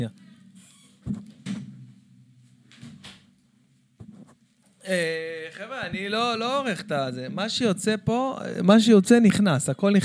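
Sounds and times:
speech: 0.0 - 0.2, 4.9 - 10.0
door being closed: 0.6 - 2.0, 2.7 - 3.4.

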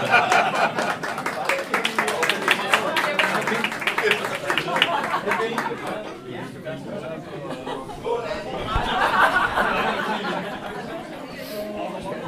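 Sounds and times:
people chuckling: 0.0 - 1.6, 2.4 - 6.4, 7.0 - 12.2
crowd clapping after a toast: 0.0 - 6.2
chatter: 0.0 - 12.2.

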